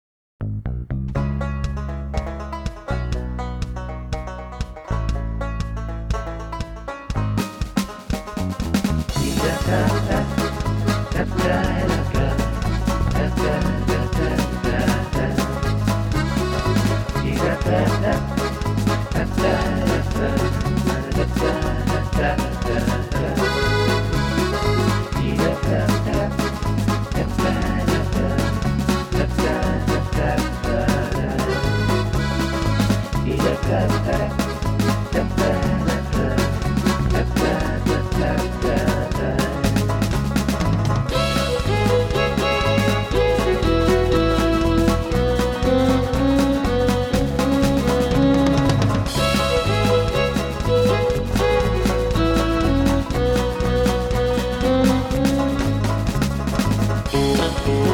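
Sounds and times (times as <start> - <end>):
bluegrass shanty: 0.4 - 57.9.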